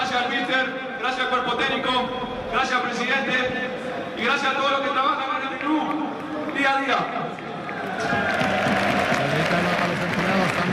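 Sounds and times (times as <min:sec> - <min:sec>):
speech: 0:00.2 - 0:07.4, 0:08.0 - 0:08.4
teammates applauding: 0:05.8 - 0:10.7.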